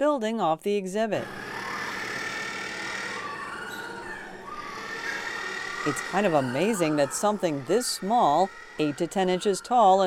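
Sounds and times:
speech: 0.0 - 1.4, 5.8 - 10.0
little blue penguins calling loudly: 1.3 - 10.0.

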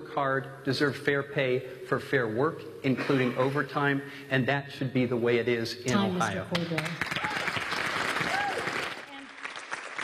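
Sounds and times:
speech: 0.1 - 7.3
audience clapping: 6.3 - 10.0.

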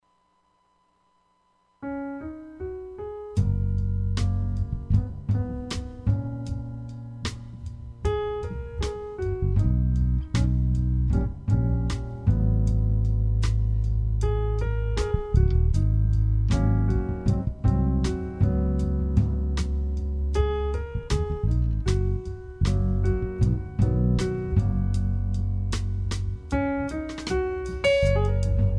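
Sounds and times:
jazz music: 1.8 - 28.7.

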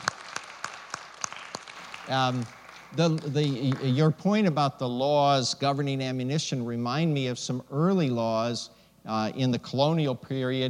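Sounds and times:
audience applause: 0.0 - 4.0
speech: 2.1 - 10.6.

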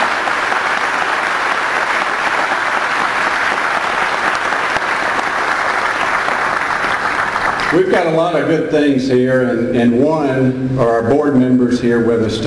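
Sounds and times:
crowd applause: 0.0 - 8.2
speech: 7.7 - 12.4.

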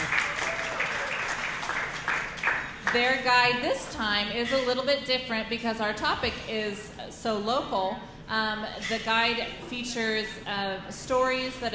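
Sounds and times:
audience applause for the Wichita Public Library at Engage ICT: 0.0 - 3.0
speech: 2.9 - 11.7.

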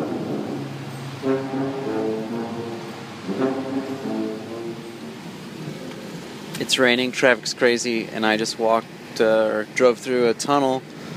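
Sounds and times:
man playing tuba in a tunnel: 0.0 - 5.8
speech: 6.7 - 10.9.

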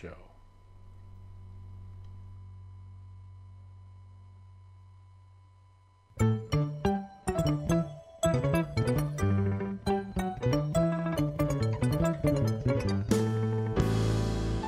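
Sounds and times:
jazz music: 6.2 - 14.6.

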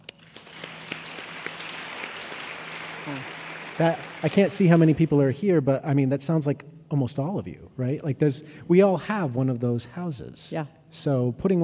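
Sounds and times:
audience clapping: 0.0 - 5.2
speech: 3.1 - 11.6.

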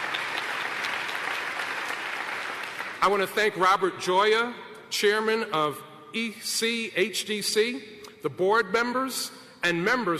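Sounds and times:
audience applause at a public announcement in Buffalo: 0.0 - 3.0
speech: 3.0 - 10.1.

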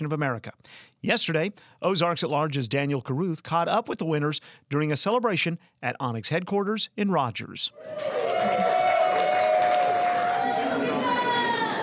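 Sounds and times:
speech: 0.0 - 8.7
employees and friends cheering: 7.7 - 11.8.

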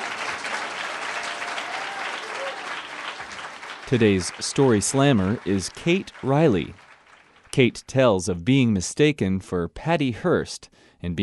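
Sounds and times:
audience applause: 0.0 - 7.6
speech: 3.9 - 6.8, 7.6 - 11.2.

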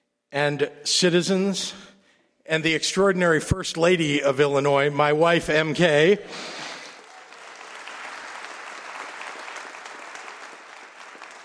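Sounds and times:
speech: 0.3 - 1.9, 2.5 - 6.7
audience applause at a state address before the Illinois General Assembly: 6.8 - 11.4.

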